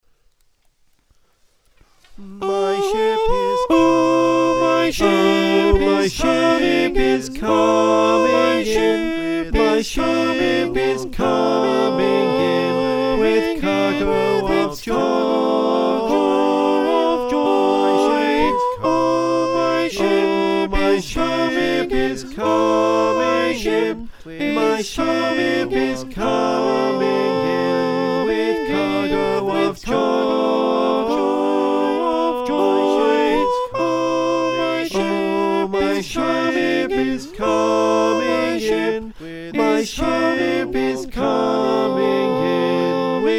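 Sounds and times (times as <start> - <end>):
soprano alto tenor bass choir singing: 2.2 - 43.3.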